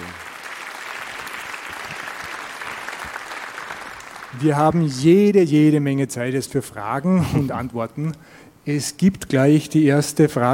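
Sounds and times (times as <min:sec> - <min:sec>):
audience applause after a talk: 0:00.0 - 0:04.6
speech: 0:04.3 - 0:10.5.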